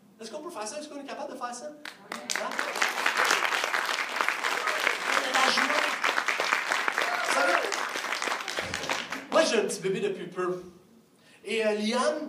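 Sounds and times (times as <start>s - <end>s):
speech: 0.2s - 3.7s, 9.4s - 10.8s, 11.4s - 12.2s
audience applauding: 1.8s - 9.5s.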